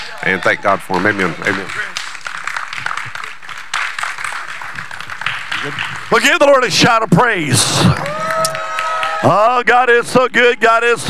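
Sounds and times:
audience hand clapping: 0.0 - 6.8, 7.8 - 9.4
speech: 0.2 - 2.0, 5.6 - 8.2, 9.2 - 11.0.

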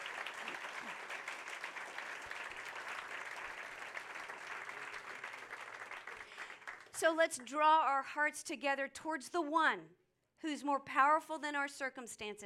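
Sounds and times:
audience applauding veterans: 0.0 - 7.0
speech: 7.0 - 12.4.

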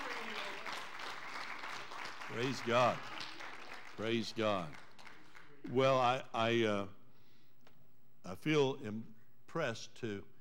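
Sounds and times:
round of applause: 0.0 - 5.7
speech: 2.3 - 3.1, 4.0 - 4.8, 5.6 - 7.0, 8.2 - 10.3.

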